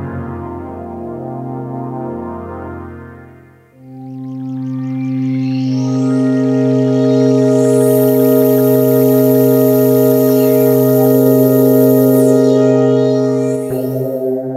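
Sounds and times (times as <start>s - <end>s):
synth bass effect from a Roland EM-10: 3.8s - 14.5s.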